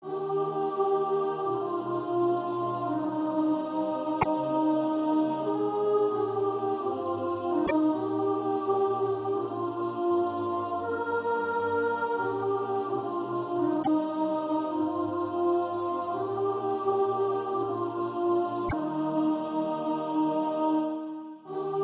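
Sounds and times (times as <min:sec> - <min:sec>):
soprano singing: 0:00.0 - 0:21.8.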